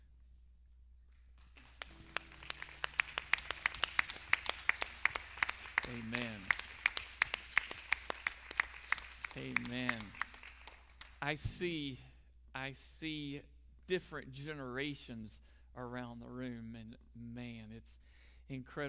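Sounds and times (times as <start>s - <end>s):
audience applause: 1.5s - 11.2s
speech: 9.4s - 10.2s, 11.2s - 18.8s.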